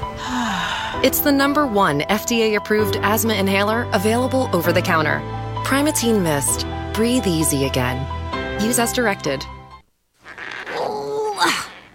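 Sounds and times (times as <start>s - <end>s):
speech: 1.0s - 9.6s
person groaning while straining to open a stuck jar in a kitchen: 10.7s - 11.9s.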